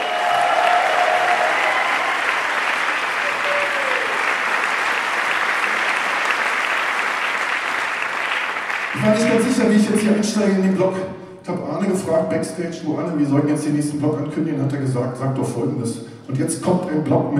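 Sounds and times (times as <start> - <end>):
audience applause: 0.0 - 9.7
speech: 9.1 - 17.3.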